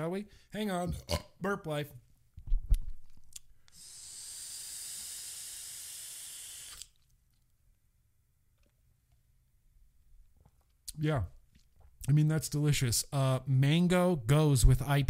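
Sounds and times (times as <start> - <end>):
speech: 0.0 - 2.0, 11.0 - 11.4, 12.0 - 15.0
vapor inhaled and exhaled: 3.7 - 7.0.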